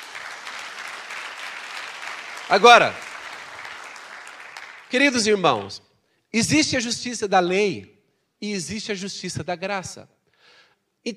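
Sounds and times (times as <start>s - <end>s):
audience applause: 0.0s - 5.8s
speech: 2.5s - 3.0s, 4.9s - 10.2s.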